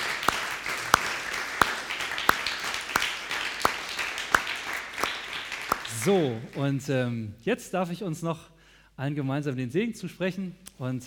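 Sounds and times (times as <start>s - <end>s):
audience applause: 0.0s - 6.7s
speech: 6.0s - 11.0s.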